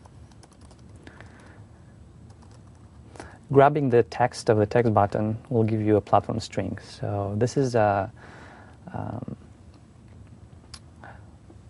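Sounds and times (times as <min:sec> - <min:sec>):
quiet typing on a computer keyboard as code is written: 0:00.0 - 0:01.5, 0:02.3 - 0:02.8
speech: 0:03.5 - 0:09.4.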